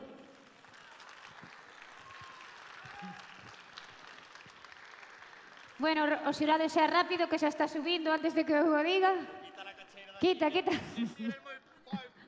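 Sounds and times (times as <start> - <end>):
audience applause: 0.2 - 5.8
speech: 3.0 - 3.3, 5.8 - 9.5, 10.2 - 11.5.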